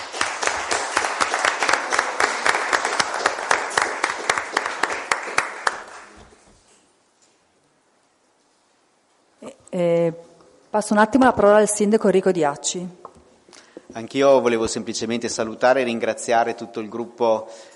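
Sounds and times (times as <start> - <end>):
audience applause: 0.0 - 6.2
speech: 9.8 - 13.0, 14.0 - 17.7.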